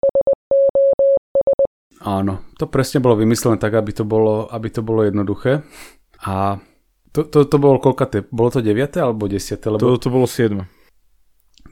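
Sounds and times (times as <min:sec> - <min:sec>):
Morse code SOS tone: 0:00.0 - 0:01.7
speech: 0:02.0 - 0:10.8.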